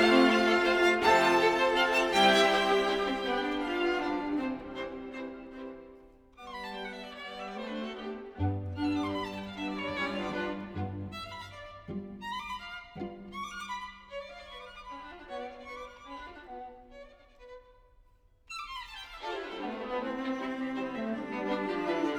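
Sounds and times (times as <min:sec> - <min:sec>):
string quintet playing a minuet in C minor: 0:00.0 - 0:13.8, 0:19.2 - 0:22.1.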